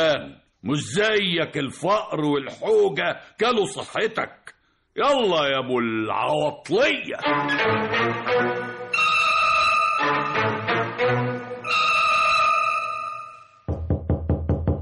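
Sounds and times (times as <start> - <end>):
speech: 0.0 - 4.4, 5.0 - 8.6
sustained music: 7.2 - 14.8
rapid knocking on a door: 13.7 - 14.8.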